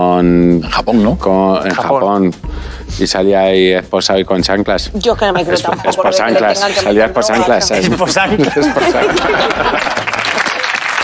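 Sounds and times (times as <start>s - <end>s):
speech: 0.0s - 10.0s
laughter: 5.3s - 11.0s
applause from a group: 9.1s - 11.0s.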